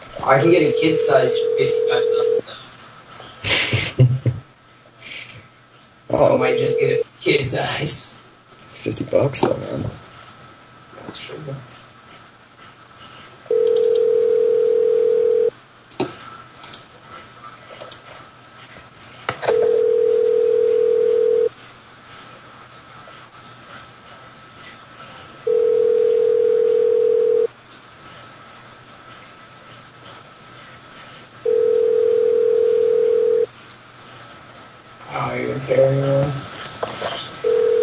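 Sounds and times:
faint noise: 0:00.0 - 0:37.8
speech: 0:00.2 - 0:02.5, 0:06.2 - 0:08.2, 0:08.8 - 0:10.0, 0:11.1 - 0:11.7
telephone tone of a Skype call: 0:00.6 - 0:02.4, 0:13.5 - 0:15.5, 0:19.4 - 0:21.5, 0:25.5 - 0:27.5, 0:31.4 - 0:33.5, 0:37.4 - 0:37.8.

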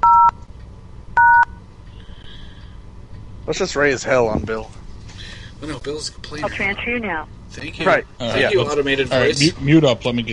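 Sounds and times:
touch-tone DTMF beeps dialing a phone extension at an automated answering system: 0:01.2 - 0:01.5
speech: 0:03.5 - 0:04.8, 0:05.6 - 0:10.3.

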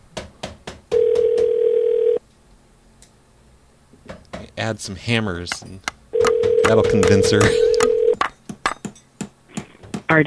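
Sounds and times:
telephone dial tone after call hung up: 0:01.0 - 0:02.2, 0:06.2 - 0:08.2
speech: 0:04.6 - 0:05.9, 0:06.7 - 0:08.0.

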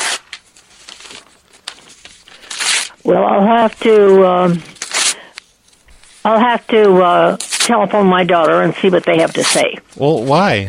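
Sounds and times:
paper ripped up into pieces by hand: 0:00.0 - 0:05.3, 0:07.2 - 0:07.8, 0:09.1 - 0:10.4
speech: 0:03.1 - 0:04.7, 0:06.2 - 0:10.6.

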